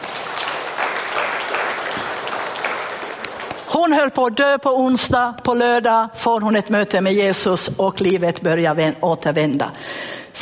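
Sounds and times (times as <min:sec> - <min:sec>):
audience applause: 0:00.0 - 0:03.7
speech: 0:03.8 - 0:10.3.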